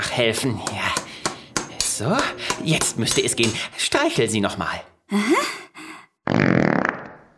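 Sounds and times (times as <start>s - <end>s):
speech: 0.2s - 0.9s, 2.0s - 5.6s
robot cat making a fart-like noise: 6.3s - 7.2s.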